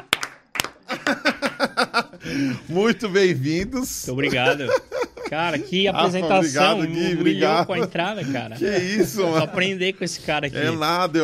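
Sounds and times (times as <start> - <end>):
hand claps: 0.0 - 1.7
laughter: 0.8 - 3.3, 4.0 - 11.2
speech: 2.2 - 11.2.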